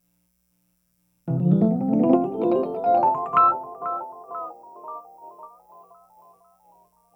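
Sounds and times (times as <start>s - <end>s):
Rhodes electric piano: 1.3s - 5.8s.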